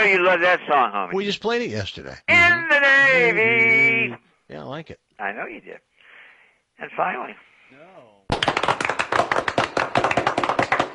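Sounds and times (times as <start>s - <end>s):
speech: 0.0s - 5.9s, 6.8s - 8.1s
nervous audience clapping: 8.3s - 10.9s.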